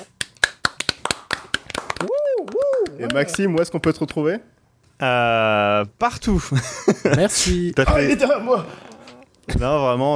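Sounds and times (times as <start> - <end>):
people applauding: 0.4 - 3.7
speech: 3.0 - 8.9, 9.5 - 10.1
laughter: 6.4 - 9.2.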